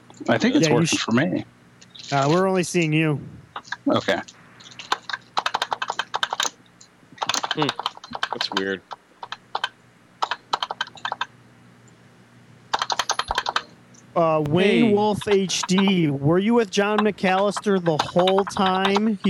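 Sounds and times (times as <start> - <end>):
speech: 0.2 - 4.4, 7.6 - 9.0, 14.2 - 19.2
computer keyboard typing: 3.6 - 6.6, 7.2 - 11.3, 12.7 - 13.7, 14.9 - 16.0, 16.7 - 19.2.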